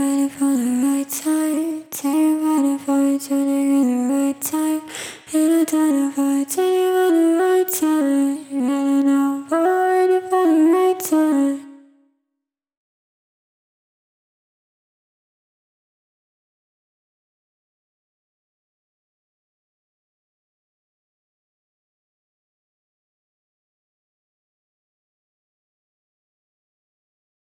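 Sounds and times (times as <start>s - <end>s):
vocals: 0.0s - 12.0s.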